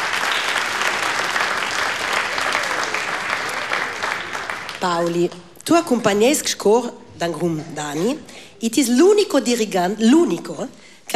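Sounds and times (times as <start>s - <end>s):
audience applause: 0.0s - 5.5s
speech: 4.8s - 11.1s.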